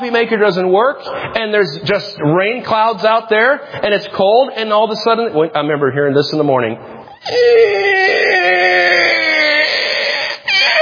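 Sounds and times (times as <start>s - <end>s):
speech: 0.0s - 8.2s
children whining and crying: 7.2s - 10.8s.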